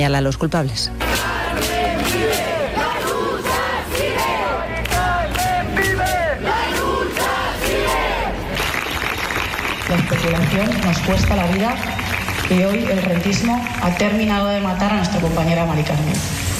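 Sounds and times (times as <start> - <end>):
speech: 0.0 - 2.2, 10.1 - 16.5
crowd applauding: 3.5 - 14.7.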